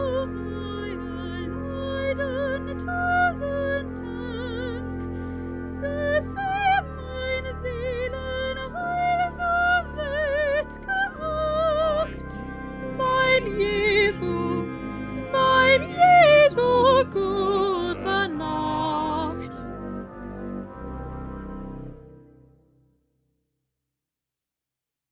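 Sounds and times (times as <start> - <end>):
soprano singing: 0.0 - 19.7.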